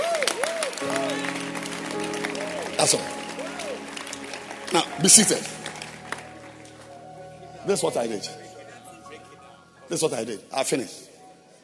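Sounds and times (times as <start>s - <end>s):
cheering voices: 0.0s - 7.0s
crowd clapping: 0.0s - 8.4s
speech: 2.8s - 3.2s, 4.7s - 5.6s, 7.7s - 8.5s, 9.9s - 11.1s.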